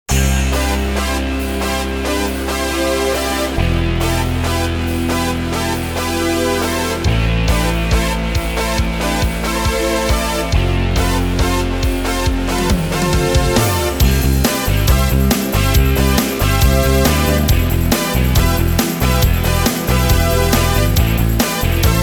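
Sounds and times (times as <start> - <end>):
rock music: 0.1 - 22.0.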